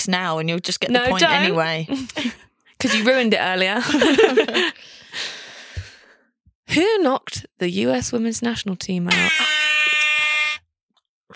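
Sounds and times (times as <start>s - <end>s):
speech: 0.0s - 5.4s, 6.7s - 9.6s
laughter: 3.8s - 4.8s
quiz answer electronic buzzer: 9.1s - 10.7s.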